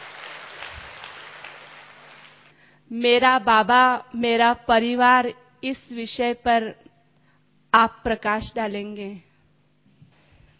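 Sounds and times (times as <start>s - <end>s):
audience in Indore applauding a speaker at a spiritual gathering: 0.0s - 2.5s
speech: 2.9s - 6.9s, 7.7s - 9.3s.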